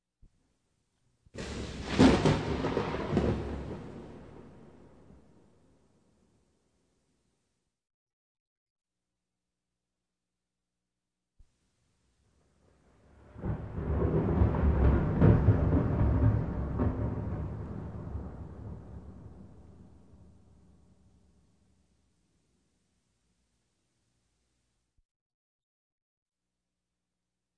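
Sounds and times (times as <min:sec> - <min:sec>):
rain: 0:01.4 - 0:05.4, 0:12.5 - 0:20.7
thunder: 0:01.4 - 0:05.7, 0:12.6 - 0:20.9.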